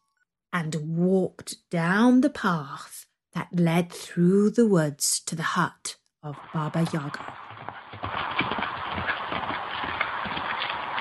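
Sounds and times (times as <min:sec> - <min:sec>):
speech: 0:00.6 - 0:07.4
galloping hooves of a horse carrying a rider along a road through the woods: 0:06.8 - 0:10.9.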